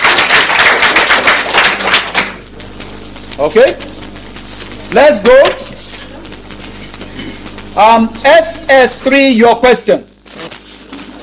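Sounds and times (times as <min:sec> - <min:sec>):
round of applause from a group: 0:00.0 - 0:02.4
speech: 0:03.4 - 0:04.0, 0:04.9 - 0:05.6, 0:07.8 - 0:10.1.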